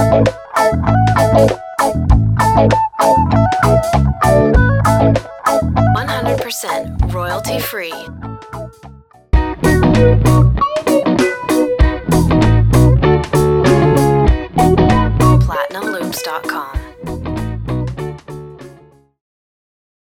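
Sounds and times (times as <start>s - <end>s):
ska guitar loops: 0.0s - 8.7s, 9.4s - 18.8s
voice: 6.0s - 8.1s, 15.4s - 16.9s.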